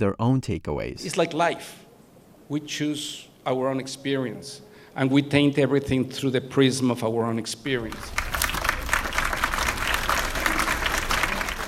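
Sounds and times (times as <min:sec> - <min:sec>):
speech: 0:00.0 - 0:01.9, 0:02.5 - 0:08.3
domestic workers applauding after a film screening in Mexico City: 0:07.8 - 0:11.6.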